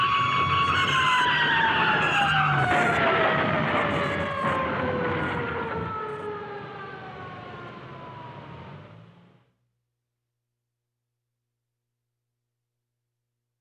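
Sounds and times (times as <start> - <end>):
car chase: 0.2 - 9.4.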